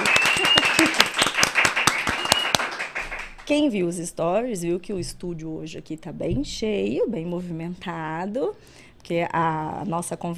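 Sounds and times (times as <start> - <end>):
laughter: 0.0 - 1.2
applause: 0.0 - 3.5
speech: 3.5 - 10.3.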